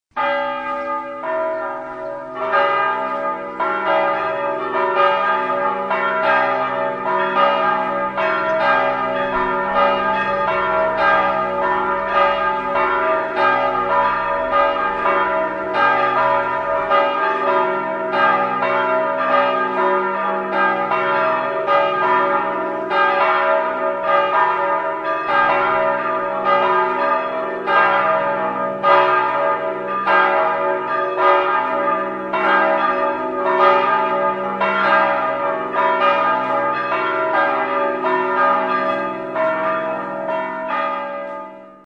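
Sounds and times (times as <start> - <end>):
bells ringing at Csíksomlyó: 0.2 - 41.8.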